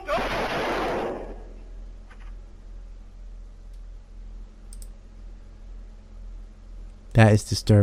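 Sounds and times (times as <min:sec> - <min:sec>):
gunshots in a played video: 0:00.1 - 0:01.6
speech: 0:07.2 - 0:07.8.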